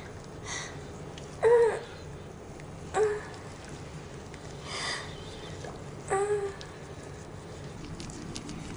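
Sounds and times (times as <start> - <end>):
girl moaning: 1.4 - 1.9, 2.9 - 3.3, 6.1 - 6.6.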